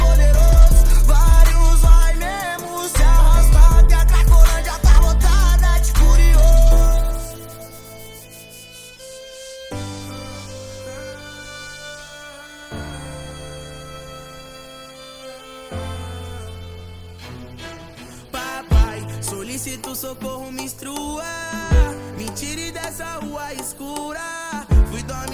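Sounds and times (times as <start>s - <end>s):
deep bass: 0.0s - 2.3s, 3.0s - 7.3s.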